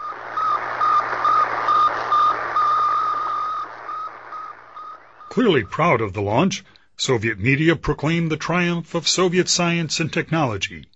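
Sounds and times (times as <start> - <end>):
Sputnik satellite beeping radio signal: 0.0 - 6.0
speech: 5.4 - 10.9.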